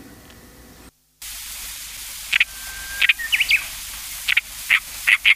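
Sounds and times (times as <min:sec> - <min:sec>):
Oriental reed warbler singing croaking rattling runs: 0:02.3 - 0:05.3.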